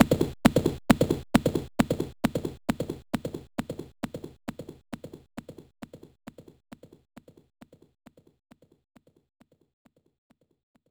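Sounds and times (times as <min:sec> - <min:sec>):
horse galloping: 0:00.0 - 0:07.8.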